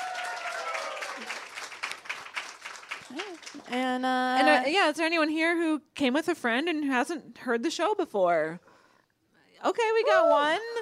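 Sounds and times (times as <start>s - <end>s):
live audience clapping: 0.0s - 4.1s
speech: 3.1s - 8.6s, 9.6s - 10.8s.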